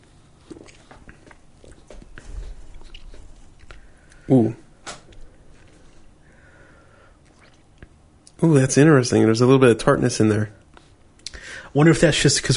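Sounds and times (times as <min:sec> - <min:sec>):
person taking a sip of a drink: 0:00.0 - 0:04.4, 0:05.1 - 0:08.0
speech: 0:04.3 - 0:04.6, 0:08.4 - 0:10.6, 0:11.7 - 0:12.5.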